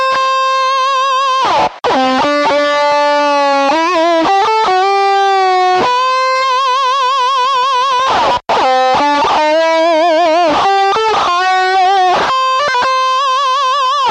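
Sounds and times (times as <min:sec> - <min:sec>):
expressive guitar lick variations: 0:00.0 - 0:14.1.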